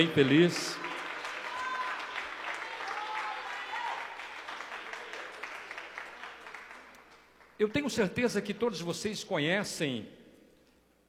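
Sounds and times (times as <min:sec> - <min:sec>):
speech: 0:00.0 - 0:00.8, 0:07.6 - 0:10.2
audience applauding: 0:00.0 - 0:07.6.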